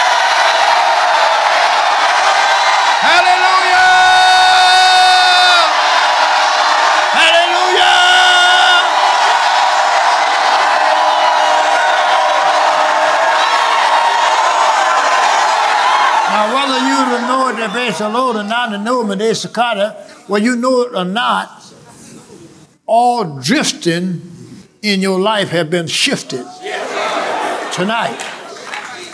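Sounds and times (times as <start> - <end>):
audience shouting together: 0.0 - 18.7, 26.5 - 29.1
speech: 17.7 - 21.6, 22.9 - 26.7, 27.8 - 28.4.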